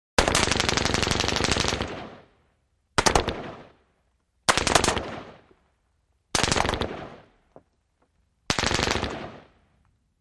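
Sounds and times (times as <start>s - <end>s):
M-16 rifle rapid fire: 0.2s - 2.3s, 3.0s - 3.8s, 4.5s - 5.4s, 6.3s - 7.3s, 8.5s - 9.6s.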